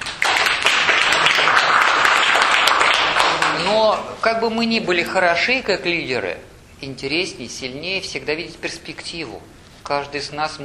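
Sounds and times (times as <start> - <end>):
group applause: 0.0 - 4.0
speech: 3.8 - 10.6.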